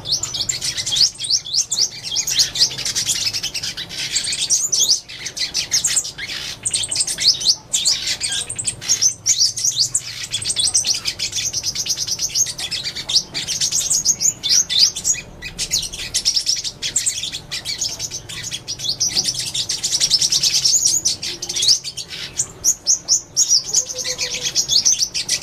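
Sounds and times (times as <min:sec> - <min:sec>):
sunbird singing: 0:00.0 - 0:25.4.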